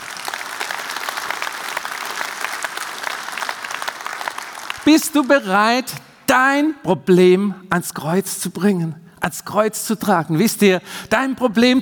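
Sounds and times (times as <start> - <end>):
audience applauding: 0.0 - 5.9
speech: 4.9 - 11.8.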